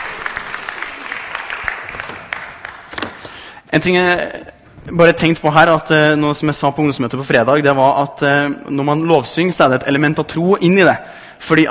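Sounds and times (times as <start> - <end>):
audience applause: 0.0 - 3.3
speech: 3.7 - 11.6.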